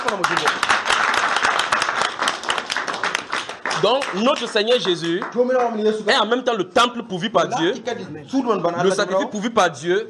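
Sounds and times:
crowd applauding: 0:00.0 - 0:06.4
speech: 0:00.1 - 0:00.6, 0:03.8 - 0:10.0.

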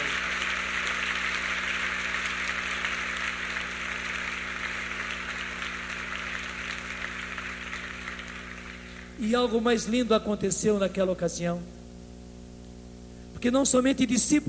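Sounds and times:
audience applause: 0:00.0 - 0:09.2
speech: 0:09.2 - 0:11.8, 0:13.4 - 0:14.4.

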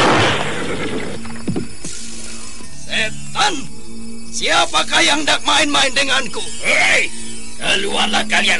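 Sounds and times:
horse whinny: 0:00.1 - 0:01.3
speech: 0:04.4 - 0:08.5.

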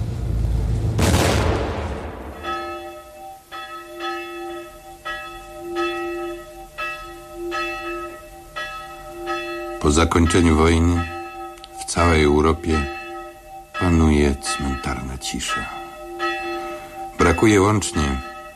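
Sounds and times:
boom-like burst: 0:00.0 - 0:02.7
church bell tolling: 0:02.2 - 0:18.5
speech: 0:09.8 - 0:11.1, 0:11.9 - 0:13.0, 0:13.8 - 0:15.8, 0:17.4 - 0:18.3.

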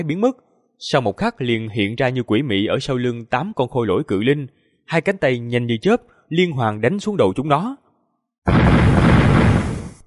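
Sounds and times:
speech: 0:00.0 - 0:07.8, 0:08.4 - 0:09.0
dull explosions in rapid succession: 0:08.5 - 0:10.0.

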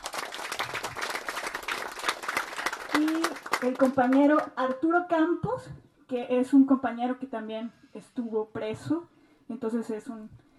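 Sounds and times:
audience applause at a panel discussion: 0:00.0 - 0:04.5
speech: 0:03.0 - 0:10.4.

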